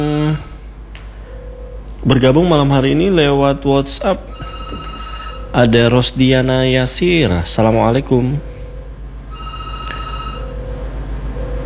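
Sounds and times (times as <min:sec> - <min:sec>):
low continuous hum: 0:00.0 - 0:11.6
speech: 0:02.0 - 0:04.5, 0:05.5 - 0:08.5
telephone ringing as the host dials a listener: 0:04.2 - 0:05.9, 0:09.3 - 0:11.0.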